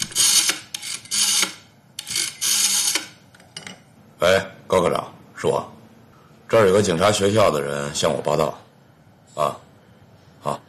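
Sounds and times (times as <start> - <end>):
telephone rotary dial spinning back: 0.0 - 3.2
speech: 4.2 - 5.7, 6.5 - 8.6.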